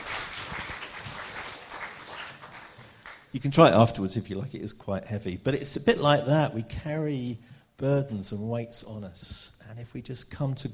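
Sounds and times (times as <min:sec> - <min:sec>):
audience applause: 0:00.0 - 0:03.3
speech: 0:03.3 - 0:10.7.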